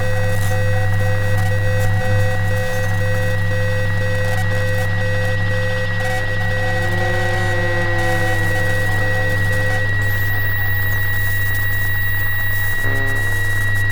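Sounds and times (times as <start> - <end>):
electromagnetic low buzz in a small apartment: 0.0 - 13.9
steady whining tones: 3.4 - 13.9.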